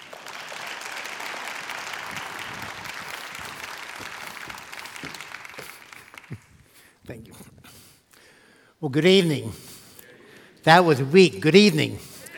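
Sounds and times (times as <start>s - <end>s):
church gathering audience applauding to welcome a guest speaker: 0.0s - 6.8s
speech: 7.1s - 7.5s, 8.8s - 9.6s, 10.6s - 12.1s.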